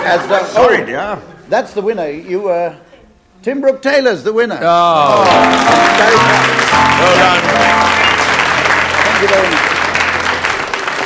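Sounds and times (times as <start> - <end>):
speech: 0.0 - 7.8, 9.2 - 9.7
crowd applause: 5.0 - 11.0.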